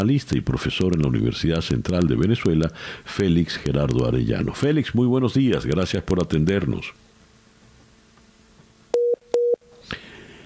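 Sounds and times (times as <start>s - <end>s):
speech: 0.0s - 7.0s
telephone line noise: 0.0s - 9.7s
telephone busy tone after dropped call: 9.0s - 9.6s.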